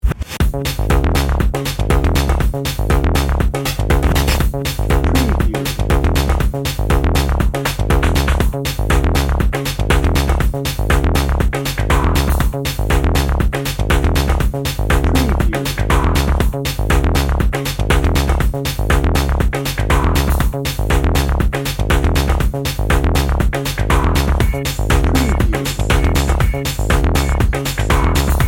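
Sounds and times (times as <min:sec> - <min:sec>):
synthetic motion drum and bass: 0:00.0 - 0:28.4.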